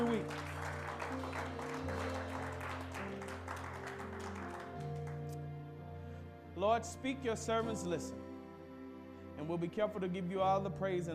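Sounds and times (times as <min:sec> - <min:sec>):
audience hand clapping: 0:00.0 - 0:05.4
speech: 0:00.1 - 0:00.5, 0:06.6 - 0:08.2, 0:09.4 - 0:11.1.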